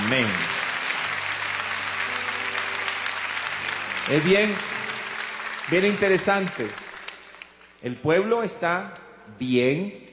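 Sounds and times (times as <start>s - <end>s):
audience applause: 0.0s - 7.7s
speech: 0.1s - 0.6s, 4.1s - 4.8s, 5.7s - 6.8s, 7.8s - 10.1s.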